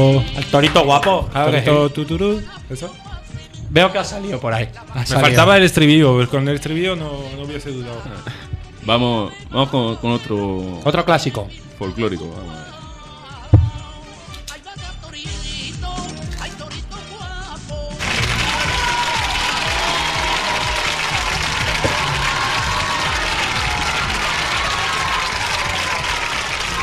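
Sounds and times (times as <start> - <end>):
speech: 0.0 - 3.1, 3.7 - 12.8
audience applause: 18.0 - 26.8.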